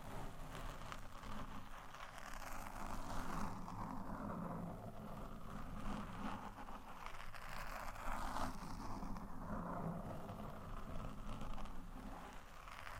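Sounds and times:
microphone scratching: 0.0 - 12.9.

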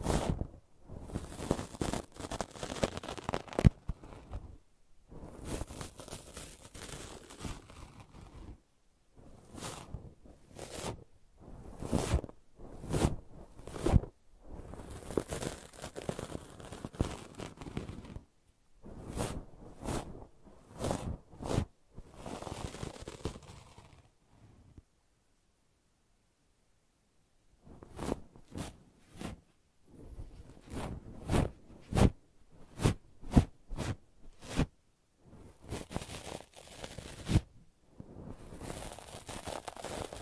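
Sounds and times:
rough brushing and scratching: 0.0 - 4.6, 5.2 - 8.6, 9.3 - 18.2, 18.8 - 24.1, 27.7 - 29.4, 30.0 - 34.7, 35.4 - 37.5, 38.1 - 40.2.

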